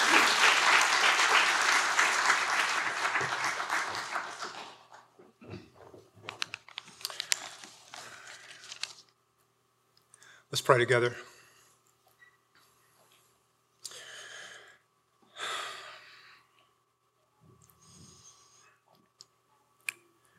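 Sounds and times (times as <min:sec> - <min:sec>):
audience applause at a church service welcoming a preacher to the stage: 0:00.0 - 0:05.1
speech: 0:10.7 - 0:11.3.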